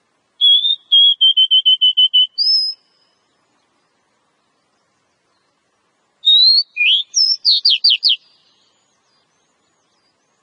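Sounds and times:
Oriental magpie-robin song used as a lure recording: 0.4 - 3.6, 6.2 - 10.4.

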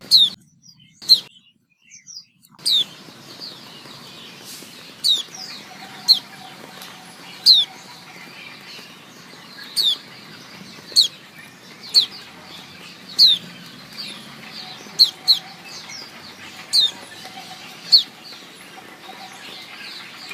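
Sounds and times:
white-eye chirping: 0.0 - 3.6, 5.0 - 6.4, 9.7 - 10.1, 13.2 - 18.3.

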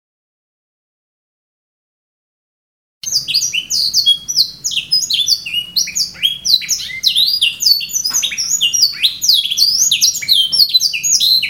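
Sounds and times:
canary whistled song: 3.0 - 11.4.

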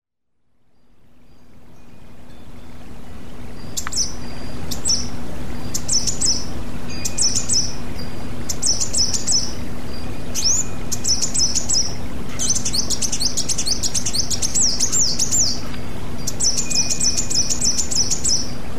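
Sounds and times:
female hummingbird: 0.2 - 18.7.

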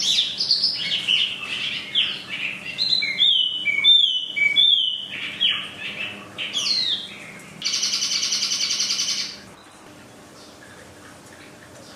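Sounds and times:
Chinese hwamei singing: 0.0 - 9.4.

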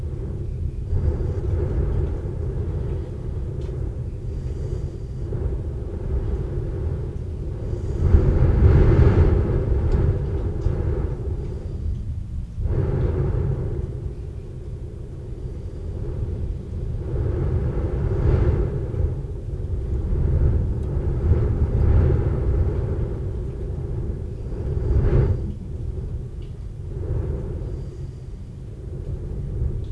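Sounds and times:
rain: 0.0 - 29.9
thunder rumbling: 0.0 - 29.9.

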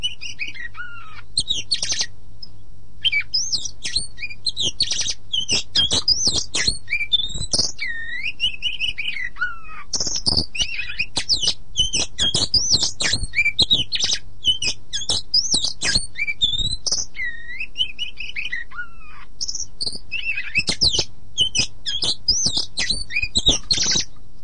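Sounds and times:
Oriental magpie-robin song of whistled notes, slurs and sharp chips: 0.0 - 2.1, 3.0 - 24.1.

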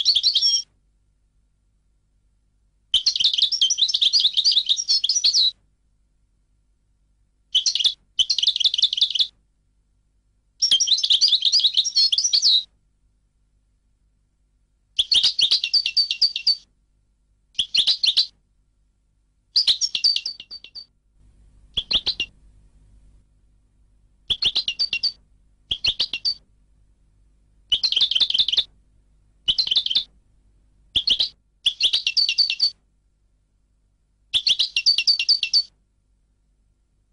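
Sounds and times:
European goldfinch singing twittering phrases: 0.0 - 0.6, 3.0 - 5.5, 7.5 - 9.3, 10.6 - 12.6, 15.0 - 16.6, 17.6 - 18.3, 19.6 - 20.9, 21.8 - 22.3, 24.3 - 26.4, 27.7 - 28.7, 29.5 - 30.1, 31.0 - 32.7, 34.4 - 35.7
faint low hum: 0.0 - 37.1.

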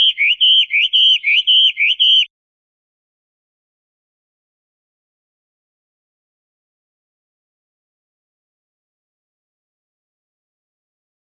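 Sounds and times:
Chinese hwamei singing whistled notes: 0.0 - 2.3.

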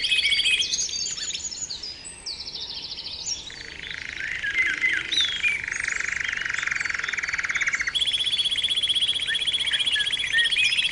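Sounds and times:
canary-like bird song: 0.0 - 10.8
sharp chirps: 3.9 - 10.8.

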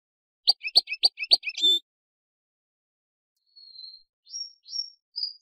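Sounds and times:
crested canary singing: 0.5 - 1.8
speech: 0.5 - 1.8.

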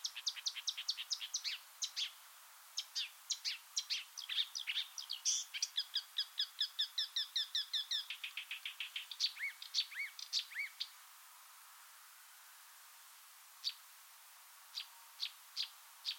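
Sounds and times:
marsh warbler song: 0.0 - 2.2, 2.8 - 11.0, 13.6 - 13.9, 14.7 - 16.1.

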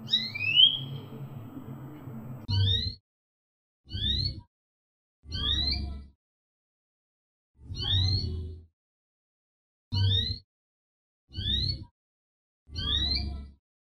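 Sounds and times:
female canary singing: 0.0 - 3.0, 3.9 - 4.4, 5.3 - 6.0, 7.7 - 8.4, 10.0 - 10.4, 11.3 - 11.8, 12.8 - 13.4.

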